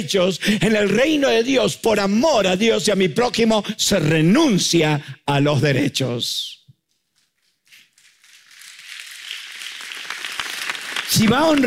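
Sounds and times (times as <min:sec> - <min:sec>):
speech: 0:00.0 - 0:06.6, 0:11.1 - 0:11.6
audience applause: 0:08.2 - 0:11.6.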